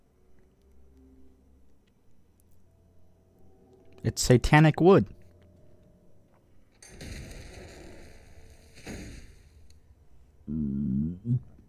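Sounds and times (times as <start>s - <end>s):
speech: 4.0s - 5.2s
rumbling crackling burst with high whine: 6.8s - 9.8s.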